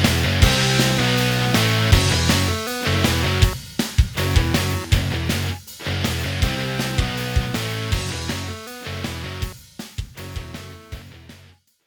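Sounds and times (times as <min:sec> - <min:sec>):
3D music: 0:00.4 - 0:03.6, 0:04.2 - 0:05.5, 0:06.5 - 0:09.5.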